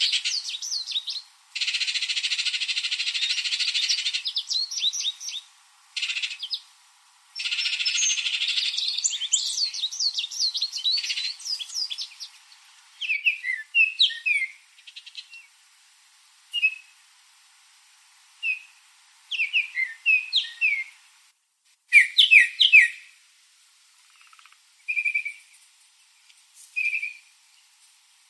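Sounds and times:
bird chirping calls: 0.0s - 6.7s, 7.4s - 15.6s, 16.5s - 17.0s, 18.4s - 21.0s, 21.9s - 23.2s, 24.0s - 27.7s.

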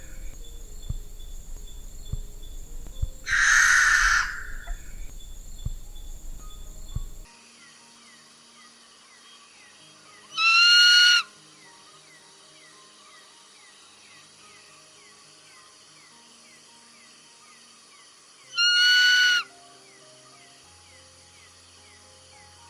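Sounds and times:
mystical owl hooting in a calm night forest: 0.0s - 7.3s, 18.6s - 19.5s
calm night forest ambience: 0.0s - 22.6s.

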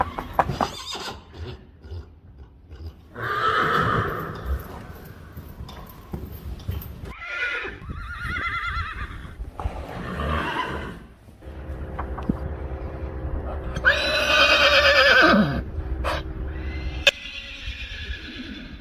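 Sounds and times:
majestic horse neighing: 0.0s - 1.7s, 3.1s - 4.9s, 7.1s - 11.1s, 13.8s - 18.7s.

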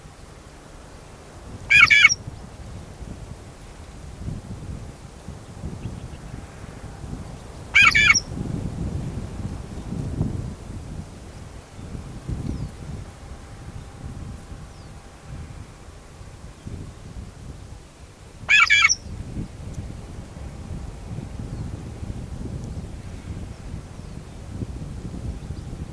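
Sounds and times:
wind rumbling: 0.0s - 25.9s
shrike grating squawks: 1.7s - 2.2s, 7.8s - 8.3s, 18.5s - 19.0s.

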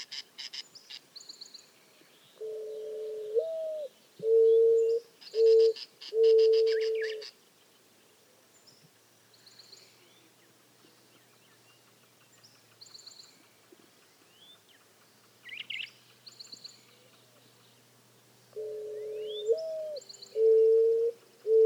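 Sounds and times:
mourning dove cooing: 2.4s - 7.3s, 18.5s - 21.6s.

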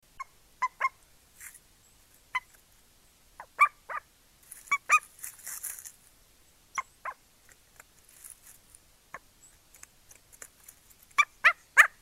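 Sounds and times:
bird calling: 0.1s - 1.0s, 3.4s - 4.1s, 4.7s - 5.1s, 6.7s - 7.2s, 11.2s - 11.9s.

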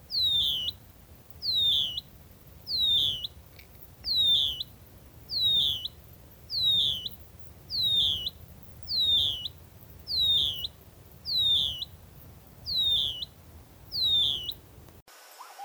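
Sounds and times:
nightjar calling: 0.0s - 15.0s.

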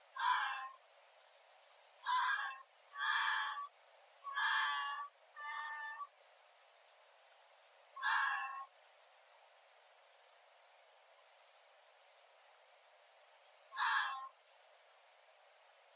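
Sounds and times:
Arctic fox: 0.0s - 0.8s, 1.8s - 6.2s, 7.7s - 8.8s, 13.5s - 14.7s.

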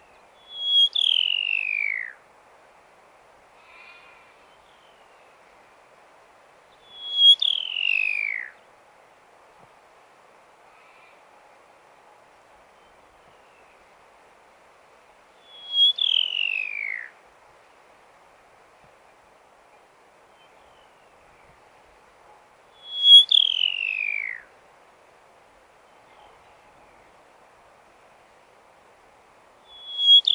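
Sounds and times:
pipit calling: 0.4s - 2.2s, 6.8s - 8.6s, 15.4s - 17.2s, 22.8s - 24.5s, 29.6s - 30.3s.

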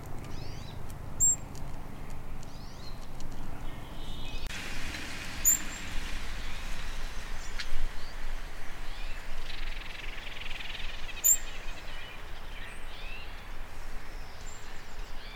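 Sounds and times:
Anna's Hummingbird: 0.0s - 15.3s.

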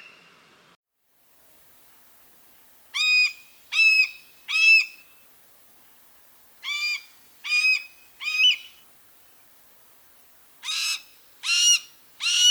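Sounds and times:
red-tailed hawk calling: 2.9s - 5.5s, 6.6s - 12.4s.

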